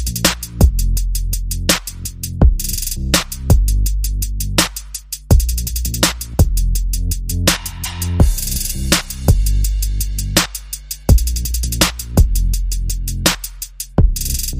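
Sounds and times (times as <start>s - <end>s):
bass: 0.0s - 14.5s
drum: 0.0s - 14.5s.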